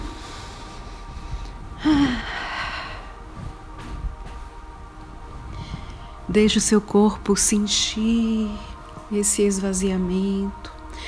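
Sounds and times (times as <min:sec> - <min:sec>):
deep breath during a guided violet-flame meditation: 0:00.0 - 0:04.0, 0:10.9 - 0:11.0
faint hiss: 0:00.0 - 0:11.0
speech: 0:06.3 - 0:11.0.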